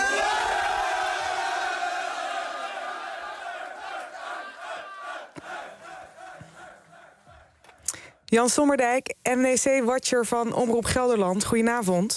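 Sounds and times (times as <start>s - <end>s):
football players shouting and cheering in a locker room: 0.0s - 7.7s
speech: 8.3s - 12.1s.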